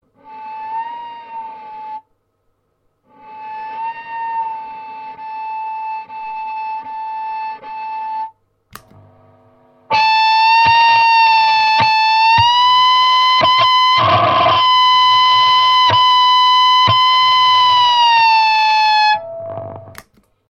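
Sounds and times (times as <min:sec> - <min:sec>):
clean guitar tone through Boss Metal Zone pedal: 0:03.1 - 0:20.0.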